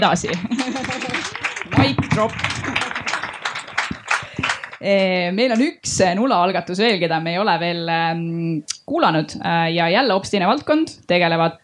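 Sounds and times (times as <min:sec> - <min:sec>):
speech: 0:00.0 - 0:01.0, 0:01.8 - 0:02.6, 0:04.8 - 0:11.6
laughter: 0:00.0 - 0:04.8
audience applause: 0:00.0 - 0:04.9.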